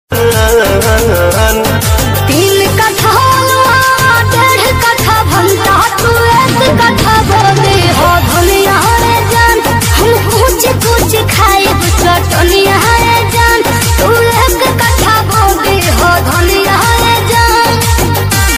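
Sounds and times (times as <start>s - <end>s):
Bhojpuri song: 0.1s - 18.5s.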